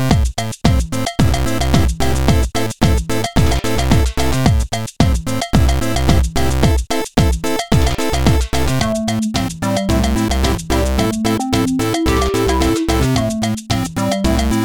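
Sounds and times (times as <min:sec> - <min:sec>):
CV4 pulse on a poly synth: 0:00.1 - 0:14.6.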